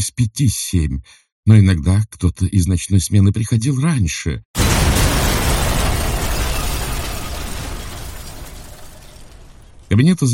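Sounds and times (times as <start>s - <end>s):
speech: 0.0s - 4.9s, 10.0s - 10.3s
explosion blowing out windows: 4.6s - 9.9s
glass shattering: 4.6s - 10.0s.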